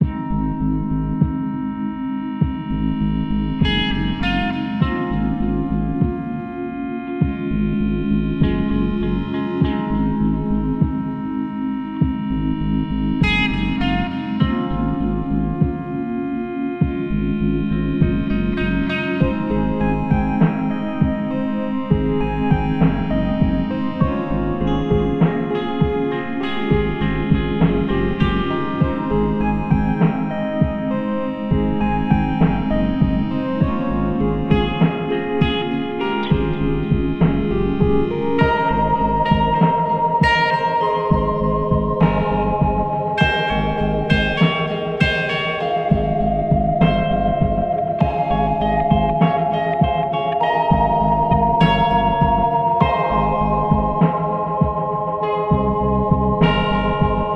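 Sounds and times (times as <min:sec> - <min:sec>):
lo-fi ambient music: 0:00.0 - 0:57.3.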